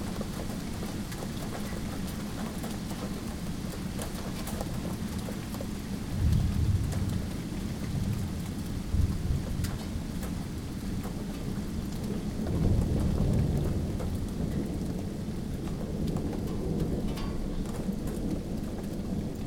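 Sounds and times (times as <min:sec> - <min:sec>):
tornado sirens in West Allis Wisconsin: 0:00.1 - 0:19.4.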